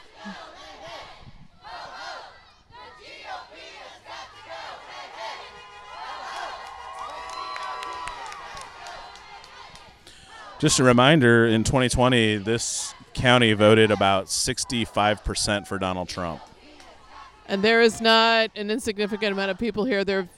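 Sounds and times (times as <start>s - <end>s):
rally crowd chanting: 0.0s - 20.3s
speech: 0.2s - 0.5s, 10.6s - 16.5s, 17.5s - 20.3s
rally crowd cheering and whooping: 5.5s - 9.7s.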